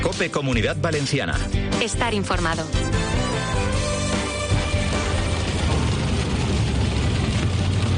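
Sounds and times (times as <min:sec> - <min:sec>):
speech: 0:00.1 - 0:03.1
persistent heavy rain: 0:04.3 - 0:07.9.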